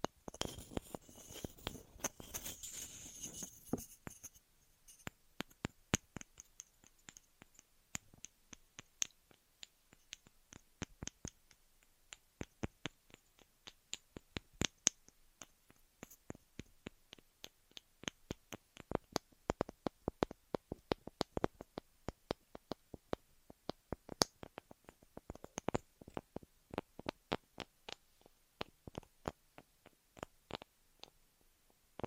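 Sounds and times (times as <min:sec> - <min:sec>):
ear cleaning clicks and crackles: 0:00.0 - 0:31.2
ear massage bright rustling: 0:00.3 - 0:05.1.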